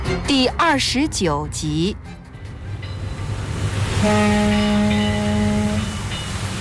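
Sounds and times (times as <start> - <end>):
sea wind over Victoria Harbour in Hong Kong: 0.1 - 6.5
speech: 0.3 - 2.1, 4.1 - 4.8
ship horns in Victoria Harbour: 3.7 - 6.5.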